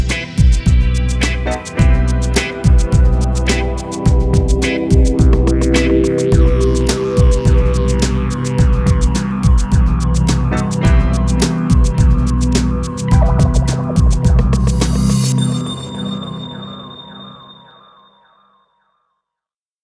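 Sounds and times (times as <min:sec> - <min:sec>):
deep guitar mix: 0:00.0 - 0:15.4.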